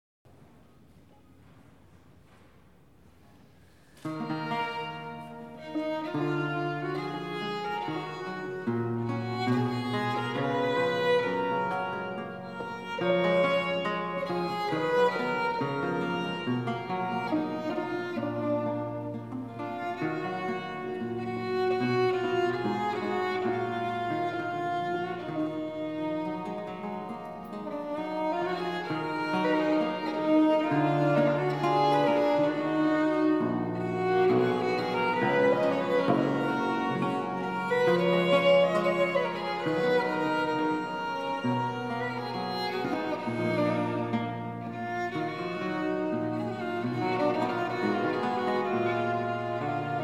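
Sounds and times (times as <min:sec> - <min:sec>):
two violins: 0:03.9 - 0:50.0.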